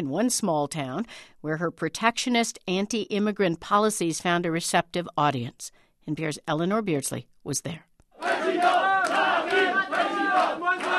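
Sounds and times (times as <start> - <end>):
speech: 0.0 - 8.4
crowd cheering and chanting at a campaign rally: 8.2 - 10.9.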